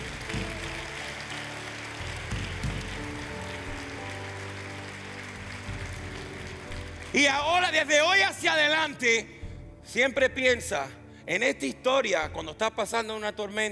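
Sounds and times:
audience applause: 0.0 - 8.0
speech: 7.1 - 13.6.

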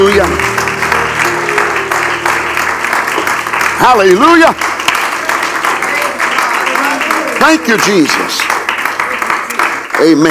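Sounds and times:
audience clapping hands: 0.0 - 10.2
speech: 3.8 - 4.8, 7.4 - 8.5, 10.0 - 10.2.

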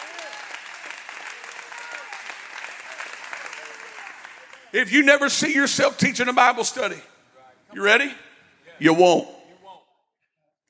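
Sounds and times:
audience clapping hands: 0.0 - 5.3
speech: 4.7 - 7.1, 7.7 - 8.2, 8.8 - 9.4.

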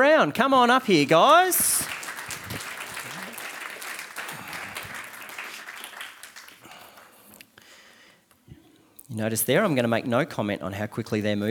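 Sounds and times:
speech: 0.0 - 1.9, 9.1 - 11.4
church audience applause welcoming two people onto a stage: 0.4 - 7.2.

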